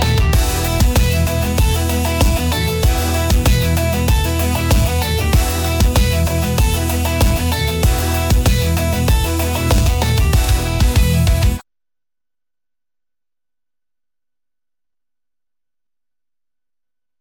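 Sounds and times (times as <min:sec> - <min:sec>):
party rock music: 0:00.0 - 0:11.6.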